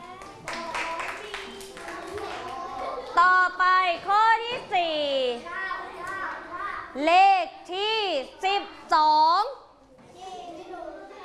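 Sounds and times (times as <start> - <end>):
classroom children clapping: 0.0 - 3.2
speech: 3.2 - 5.6, 7.0 - 9.5.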